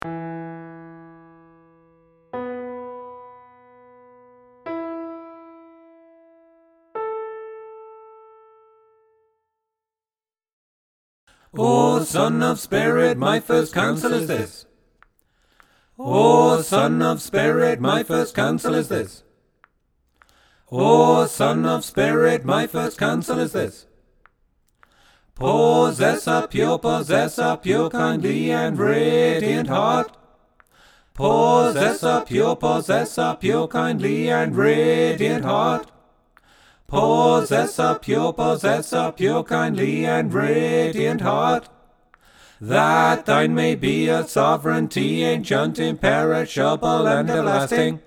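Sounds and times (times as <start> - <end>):
choral music tutti: 11.5 - 14.7, 16.0 - 19.3, 20.7 - 23.9, 25.4 - 30.3, 31.2 - 36.0, 36.9 - 41.9, 42.6 - 48.0.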